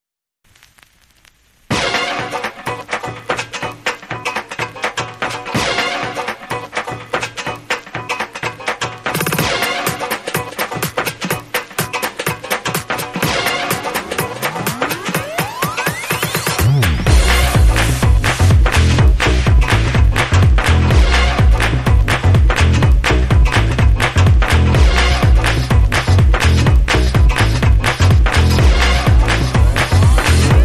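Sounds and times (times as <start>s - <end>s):
swing jam underscore: 1.7s - 30.6s.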